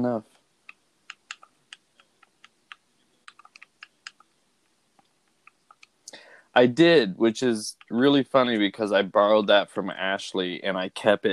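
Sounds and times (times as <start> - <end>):
speech: 0.0 - 0.4, 6.6 - 11.3
typing a word on a computer keyboard: 0.7 - 4.3.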